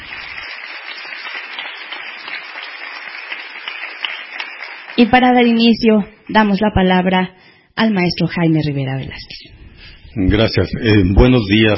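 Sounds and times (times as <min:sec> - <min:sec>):
audience applause: 0:00.0 - 0:05.6
speech: 0:05.0 - 0:09.5, 0:10.1 - 0:11.7.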